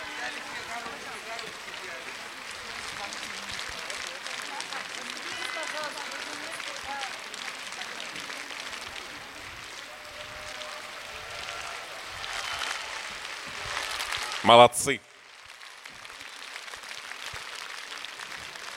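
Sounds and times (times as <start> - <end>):
crowd voices: 0.0 - 15.0
audience applause at a festival of young choirs and soloists: 0.0 - 18.7
speech: 14.5 - 15.1.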